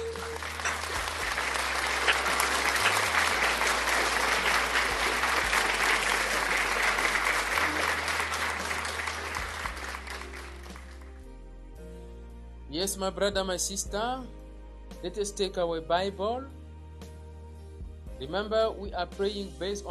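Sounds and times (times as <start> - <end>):
large group applauding: 0.0 - 11.2
speech: 12.8 - 14.4, 15.0 - 16.6, 18.2 - 19.9.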